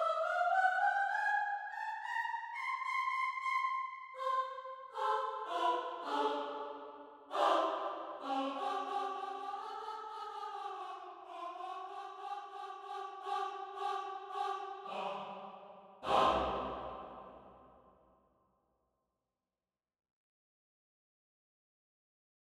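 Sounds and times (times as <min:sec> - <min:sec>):
choir singing into a microphone: 0:00.0 - 0:17.6.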